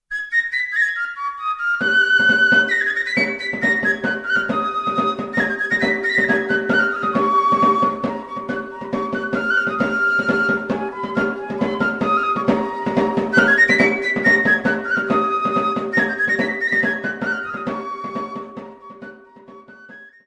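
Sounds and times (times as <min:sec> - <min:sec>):
Basque fandango folk music: 0:00.3 - 0:20.2.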